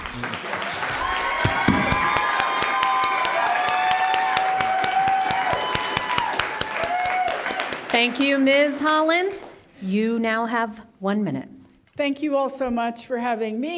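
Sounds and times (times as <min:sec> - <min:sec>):
audience clapping: 0:00.0 - 0:09.6
whistles and cheers: 0:00.2 - 0:07.9
speech: 0:08.0 - 0:13.7.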